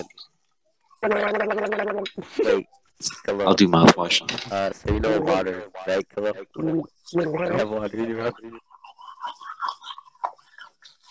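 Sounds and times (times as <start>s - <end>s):
speech: 1.0s - 9.4s
brushing teeth with toothbrush: 8.7s - 11.0s.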